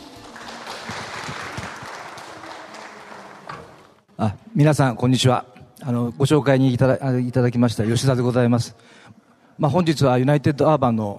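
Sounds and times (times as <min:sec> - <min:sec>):
audience applause: 0:00.0 - 0:04.1
speech: 0:04.2 - 0:11.1.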